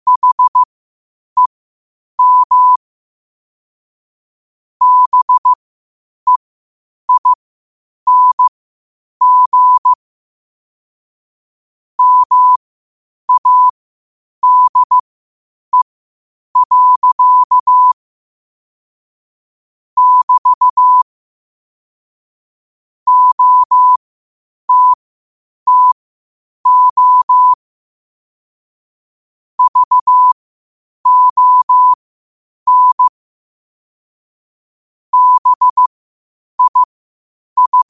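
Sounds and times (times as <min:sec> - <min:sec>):
morse code at 5 wpm: 0:00.1 - 0:00.7, 0:02.2 - 0:02.8, 0:04.8 - 0:05.6, 0:07.1 - 0:07.4, 0:08.1 - 0:08.5, 0:09.2 - 0:10.0, 0:12.0 - 0:12.6, 0:13.3 - 0:13.7, 0:14.4 - 0:15.0, 0:16.6 - 0:18.0, 0:20.0 - 0:21.0, 0:23.1 - 0:24.0, 0:24.7 - 0:25.0, 0:25.7 - 0:26.0, 0:26.7 - 0:27.6, 0:29.6 - 0:30.4, 0:31.0 - 0:32.0, 0:32.7 - 0:33.1, 0:35.1 - 0:35.9, 0:36.6 - 0:36.9, 0:37.6 - 0:37.8.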